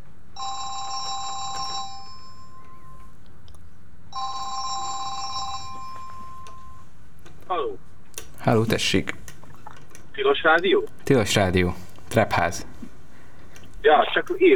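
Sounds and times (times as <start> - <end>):
telephone ringing with electronic trill: 0.4 - 3.2, 4.1 - 7.0
speech: 8.4 - 9.2, 10.2 - 12.7, 13.8 - 14.5.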